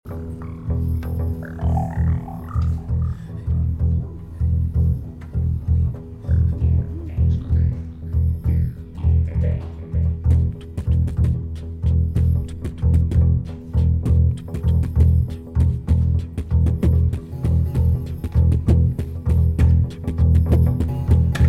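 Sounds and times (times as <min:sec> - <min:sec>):
rock music: 0:00.1 - 0:21.4.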